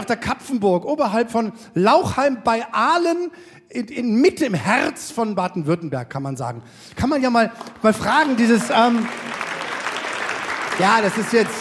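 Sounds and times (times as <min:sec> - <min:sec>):
speech: 0:00.0 - 0:09.4, 0:10.8 - 0:11.6
audience applause at Kapfenburg above Lauchheim in Baden-Württemberg: 0:07.5 - 0:11.6.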